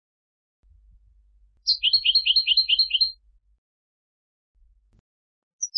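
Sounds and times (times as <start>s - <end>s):
European goldfinch Carduelis carduelis twittering: 1.7s - 3.1s.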